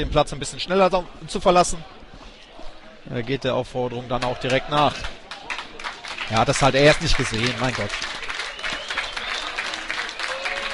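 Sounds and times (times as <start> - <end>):
speech: 0.0 - 2.0, 3.0 - 5.2, 6.3 - 8.2
football stadium spectators applauding a player leaving the pitch: 4.2 - 10.7.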